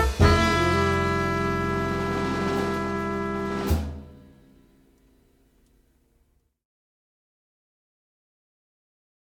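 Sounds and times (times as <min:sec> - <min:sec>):
horn: 0:00.0 - 0:04.7.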